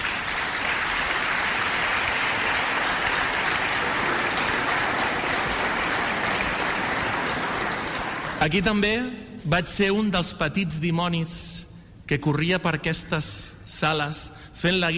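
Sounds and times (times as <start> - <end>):
audience applause: 0.0 - 8.5
speech: 8.4 - 14.9.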